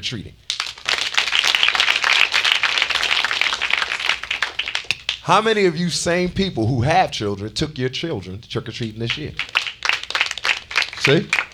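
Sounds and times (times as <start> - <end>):
speech: 0.0 - 0.5, 5.2 - 9.5, 11.1 - 11.4
audience applause: 0.5 - 5.5, 9.1 - 11.5.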